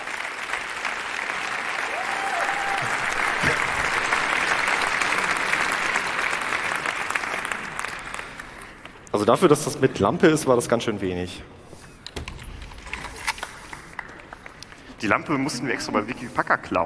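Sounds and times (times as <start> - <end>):
applause: 0.0 - 9.2, 13.4 - 15.6
speech: 9.2 - 11.6, 15.0 - 16.8.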